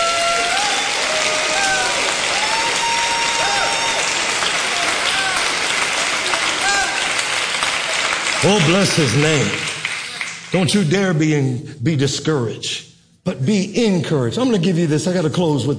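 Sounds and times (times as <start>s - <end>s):
audience clapping hands: 0.0s - 11.0s
speech: 8.4s - 9.6s, 10.5s - 15.7s.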